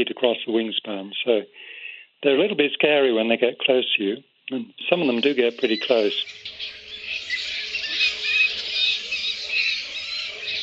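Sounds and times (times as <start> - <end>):
speech: 0.0 - 6.5
fruit bats calling in a tree: 5.0 - 10.6.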